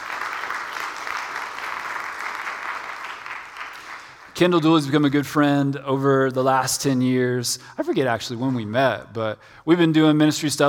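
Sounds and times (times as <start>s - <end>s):
audience applause welcoming a guest speaker at a church ministry gathering: 0.0s - 4.4s
speech: 4.4s - 10.6s.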